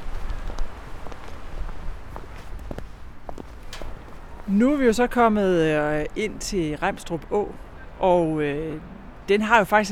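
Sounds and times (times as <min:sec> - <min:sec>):
footsteps walking along a path: 0:00.0 - 0:04.6
speech: 0:04.5 - 0:09.9.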